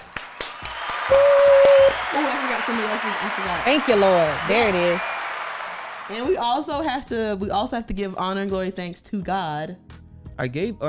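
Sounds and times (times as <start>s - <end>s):
hand clapping: 0.0s - 6.6s
speech: 2.6s - 5.1s, 6.1s - 10.8s.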